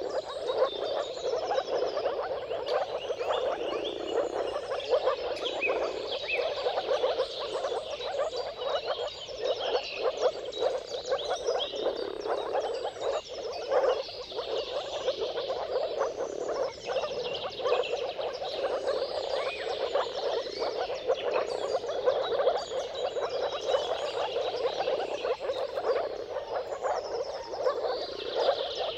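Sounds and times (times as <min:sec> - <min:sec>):
birds whistling and chirping: 0:00.0 - 0:28.9
moor frogs chorus bubbling: 0:00.0 - 0:28.9.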